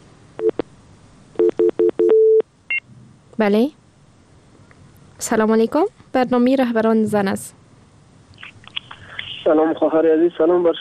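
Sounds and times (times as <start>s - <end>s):
telephone line tones as a listener's call connects: 1.4s - 2.8s
speech: 3.4s - 3.8s, 5.2s - 7.6s, 9.5s - 10.7s.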